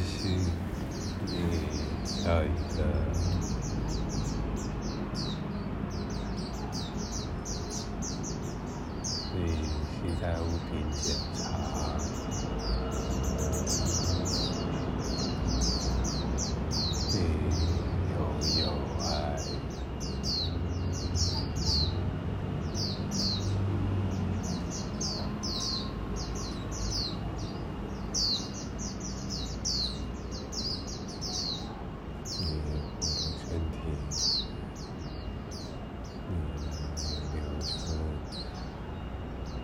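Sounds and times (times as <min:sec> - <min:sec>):
birds chirping: 0:00.0 - 0:39.6
speech: 0:01.3 - 0:03.4, 0:09.4 - 0:12.4, 0:13.5 - 0:14.4.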